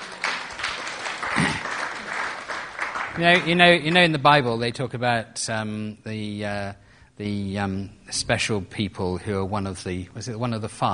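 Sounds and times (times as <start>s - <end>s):
audience applause: 0.0s - 4.0s
speech: 3.2s - 10.9s.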